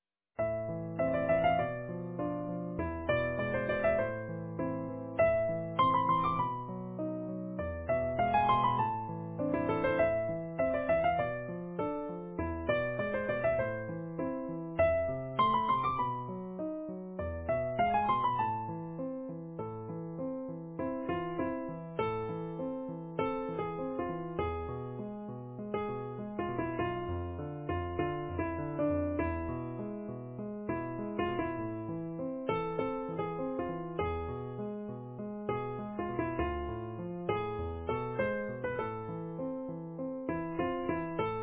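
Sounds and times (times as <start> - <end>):
easy piano: 0.4 - 41.4.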